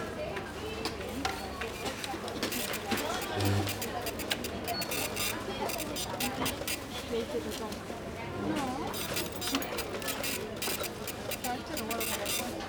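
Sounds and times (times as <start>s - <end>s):
people talking in Spanish in a supermarket: 0.2s - 12.6s
supermarket cash register: 1.8s - 7.8s, 8.8s - 12.6s
coins clinking at a supermarket checkout: 2.4s - 6.9s, 8.9s - 12.6s.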